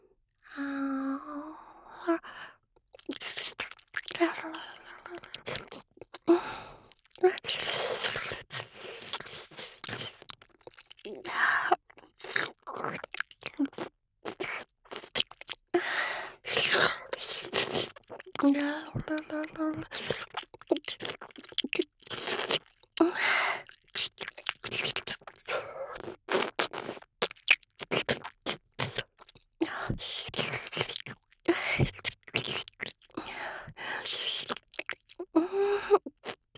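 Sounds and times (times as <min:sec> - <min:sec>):
soft breathy vocal noises: 0:00.0 - 0:10.2, 0:15.8 - 0:21.2, 0:28.8 - 0:36.5
wet ASMR ear-licking mouth sounds: 0:02.9 - 0:36.5.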